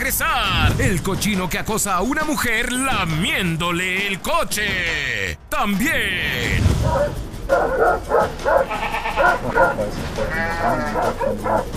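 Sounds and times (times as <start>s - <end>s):
speech: 0.1s - 11.7s
herd of goats or sheep bleating: 8.6s - 11.6s.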